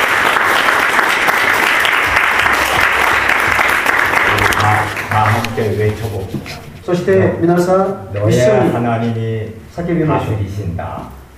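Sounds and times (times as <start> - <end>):
large audience clapping: 0.0 - 6.1
speech: 5.6 - 11.3.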